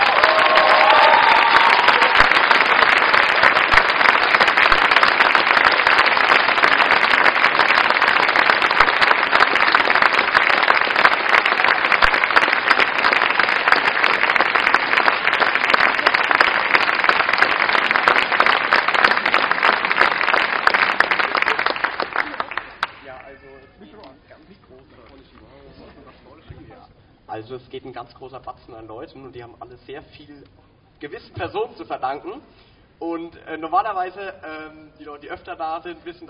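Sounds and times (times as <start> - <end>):
large audience applause: 0.0 - 23.3
speech: 27.8 - 36.2.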